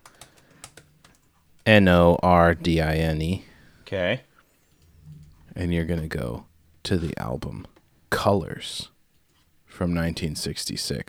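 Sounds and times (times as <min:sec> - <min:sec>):
typing on a computer keyboard: 0:00.0 - 0:01.7
speech: 0:01.7 - 0:04.3, 0:05.6 - 0:08.9, 0:09.7 - 0:11.0.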